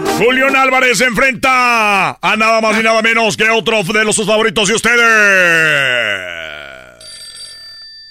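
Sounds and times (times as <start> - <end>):
speech: 0.2 - 6.8
telephone ringing: 7.0 - 8.1.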